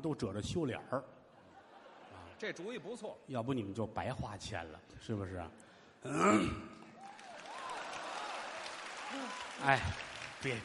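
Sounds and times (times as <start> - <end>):
speech: 0.0 - 1.2, 2.4 - 6.8, 9.1 - 10.6
laughter: 1.3 - 2.8
audience applause: 7.0 - 10.6.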